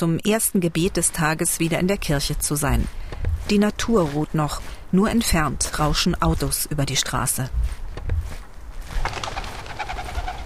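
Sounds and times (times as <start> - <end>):
speech: 0.0 - 8.2
wood pigeon fluttering out of a tree: 8.9 - 10.4.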